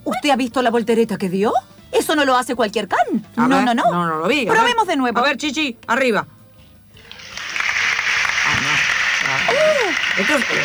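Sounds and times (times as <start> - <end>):
speech: 0.2 - 6.4, 10.2 - 10.6
studio audience applause at an improv comedy show: 7.0 - 10.6.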